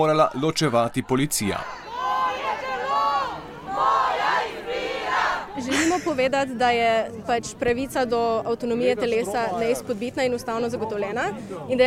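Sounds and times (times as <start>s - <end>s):
speech: 0.0s - 1.8s, 5.6s - 11.8s
protest crowd shouting: 0.0s - 5.7s
laughter: 5.5s - 6.3s.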